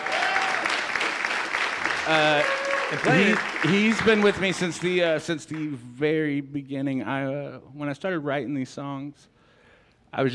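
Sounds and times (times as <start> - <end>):
cheers and whoops: 0.0 - 1.1, 2.1 - 3.6
crowd clapping: 0.0 - 5.8
speech: 2.1 - 9.3, 10.1 - 10.3.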